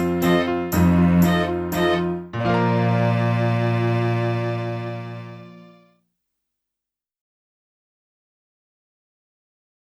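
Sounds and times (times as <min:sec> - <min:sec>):
flute: 0:00.0 - 0:05.8.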